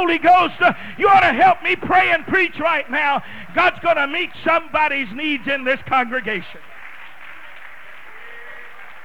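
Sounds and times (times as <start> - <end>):
speech: 0.0 - 6.7
audience clapping hands: 5.6 - 9.0.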